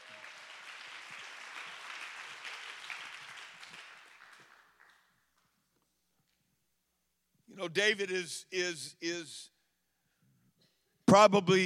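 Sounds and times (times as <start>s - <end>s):
audience clapping hands: 0.0s - 5.6s
speech: 7.6s - 9.5s, 11.1s - 11.6s.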